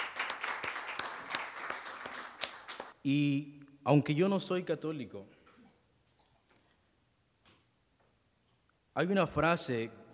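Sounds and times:
audience clapping hands: 0.0s - 3.0s
speech: 3.0s - 5.4s, 9.0s - 10.0s.

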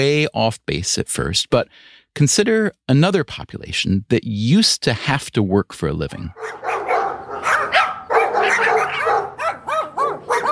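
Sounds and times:
speech: 0.0s - 6.7s
dog barking excitedly: 6.3s - 10.5s.

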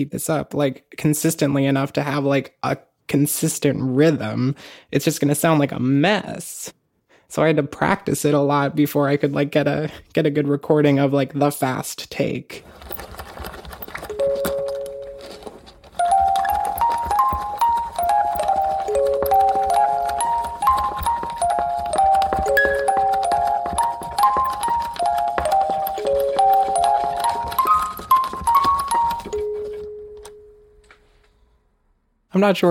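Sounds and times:
speech: 0.0s - 13.2s, 32.4s - 32.6s
music box melody: 14.0s - 31.0s.

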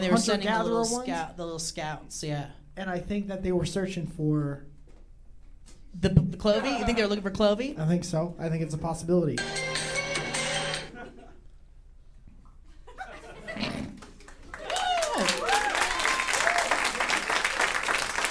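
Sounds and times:
speech: 0.0s - 4.7s, 6.0s - 9.9s
laughter: 10.8s - 11.5s, 12.7s - 14.1s
audience clapping: 13.8s - 18.2s.

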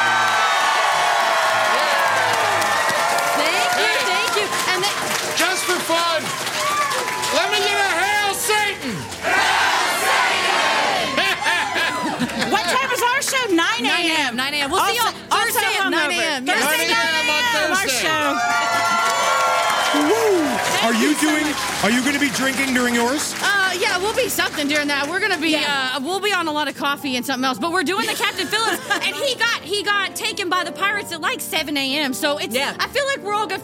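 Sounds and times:
live audience cheering loudly: 0.0s - 12.6s, 17.2s - 23.7s
laughter: 10.9s - 13.2s, 28.0s - 29.6s
speech: 13.5s - 18.9s, 20.0s - 33.6s.

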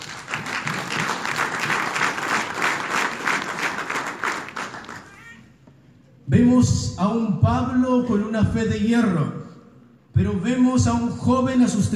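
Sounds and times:
audience applauding: 0.0s - 5.4s
speech: 6.3s - 9.4s, 10.2s - 11.9s.

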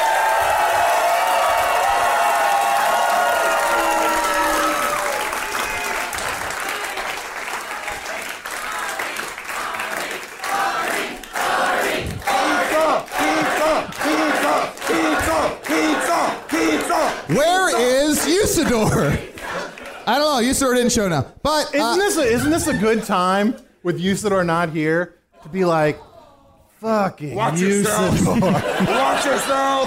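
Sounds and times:
audience applause: 0.0s - 20.2s
audience cheering: 0.0s - 20.6s, 27.4s - 29.8s
laughter: 17.3s - 19.3s, 22.0s - 23.7s, 27.5s - 29.8s
speech: 20.8s - 26.1s, 26.8s - 29.8s.

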